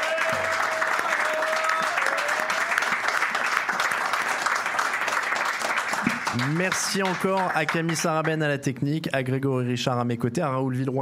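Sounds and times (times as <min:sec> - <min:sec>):
live audience applause: 0:00.0 - 0:08.4
speech: 0:06.3 - 0:10.9.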